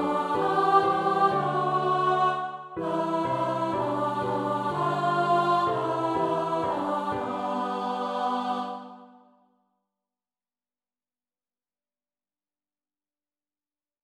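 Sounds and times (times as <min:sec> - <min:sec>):
alto voice singing a carol: 0:00.0 - 0:09.0.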